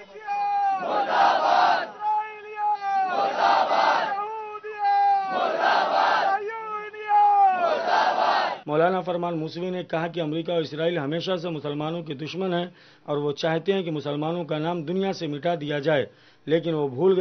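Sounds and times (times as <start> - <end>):
protest crowd chanting slogans against America and Israel: 0.0 - 2.0, 3.0 - 4.2, 5.0 - 6.4, 7.5 - 8.6
speech: 8.7 - 17.1.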